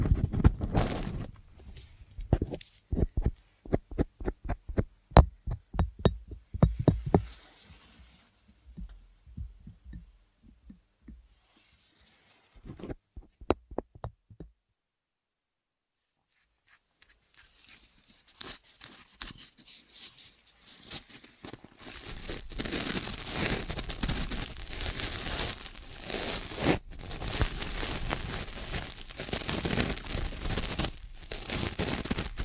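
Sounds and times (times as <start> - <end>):
dense steady crinkling rustle: 0.0 - 3.6, 16.3 - 32.4
ear cleaning taps and knocks: 2.3 - 7.3, 13.2 - 14.5.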